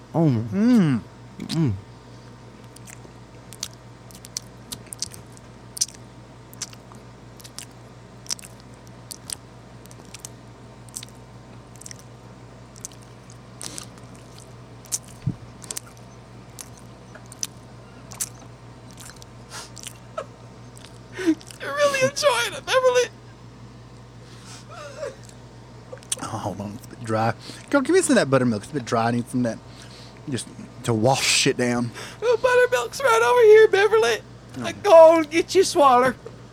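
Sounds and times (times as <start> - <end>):
speech: 0.1 - 1.9, 28.0 - 29.7, 30.3 - 36.3
biting and chewing a slightly dry cupcake with a scone-like texture: 2.6 - 22.1, 25.0 - 27.8.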